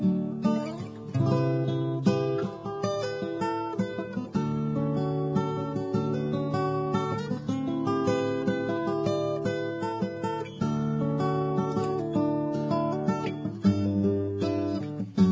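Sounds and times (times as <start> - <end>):
acoustic guitar: 0.0 - 15.3.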